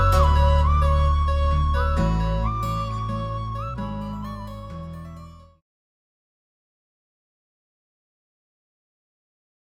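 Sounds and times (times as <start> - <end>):
love background music mix: 0.0 - 5.6.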